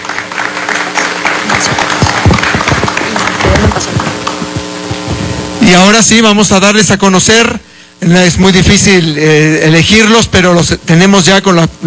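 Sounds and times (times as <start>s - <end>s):
audience applause: 0.0s - 4.6s
speech: 5.7s - 11.8s.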